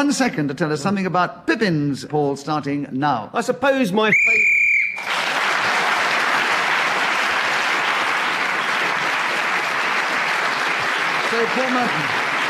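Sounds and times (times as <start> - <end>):
speech: 0.0 - 4.5, 11.4 - 12.2
game-ending high-pitched whistle blast: 4.1 - 5.0
loud sustained crowd applause: 4.9 - 12.4.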